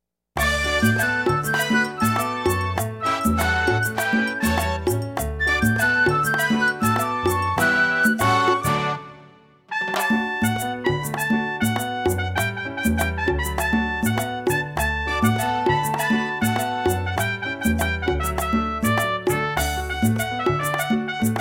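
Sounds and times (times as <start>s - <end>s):
instrumental music with no vocals: 0.4s - 21.3s.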